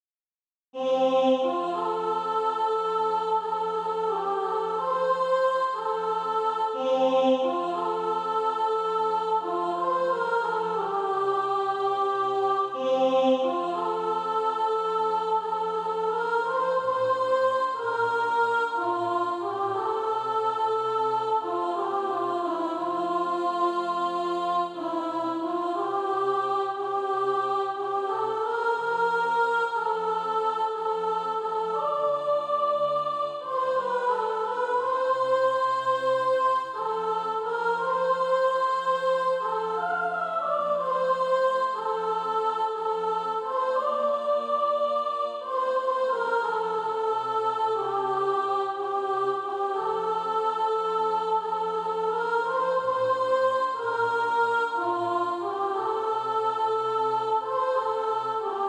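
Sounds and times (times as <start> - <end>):
soprano singing SATB practice music: 0.8 - 58.6.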